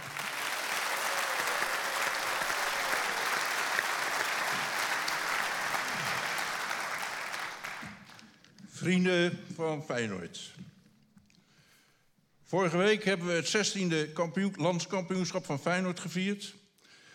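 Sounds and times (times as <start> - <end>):
audience applause: 0.0 - 8.4
speech: 8.8 - 10.6, 12.5 - 16.6.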